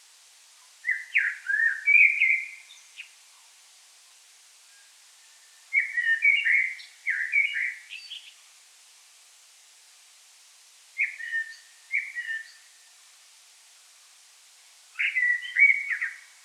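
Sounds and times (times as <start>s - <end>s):
common blackbird singing: 0.6s - 3.1s, 5.7s - 8.4s, 11.0s - 12.7s, 15.0s - 16.4s.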